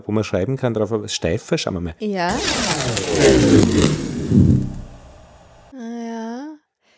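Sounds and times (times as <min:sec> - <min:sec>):
speech: 0:00.0 - 0:04.5
adhesive tape being pulled off a roll: 0:02.3 - 0:05.6.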